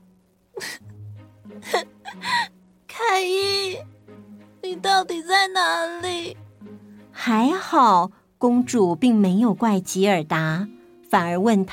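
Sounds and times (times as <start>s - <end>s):
storyteller acting out sad crying: 0.6s - 0.9s, 1.6s - 2.5s
speech: 1.6s - 2.5s, 4.9s - 6.4s, 7.2s - 11.7s.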